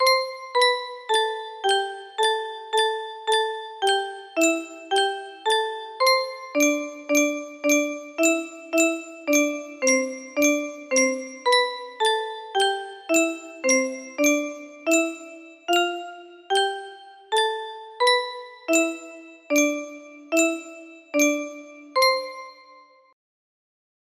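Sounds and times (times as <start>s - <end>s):
music box: 0.0s - 23.2s.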